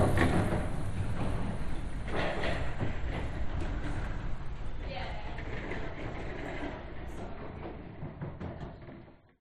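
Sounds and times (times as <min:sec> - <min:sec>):
pedestrians passing in a city boardwalk tunnel: 0:00.0 - 0:07.3.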